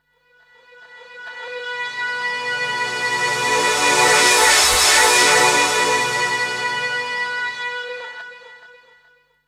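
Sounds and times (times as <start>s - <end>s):
trance sweeps: 1.4s - 8.2s.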